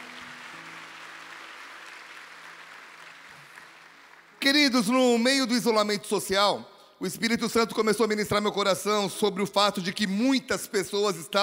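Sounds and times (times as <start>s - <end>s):
audience applauding: 0.0s - 4.8s
speech: 4.4s - 11.4s.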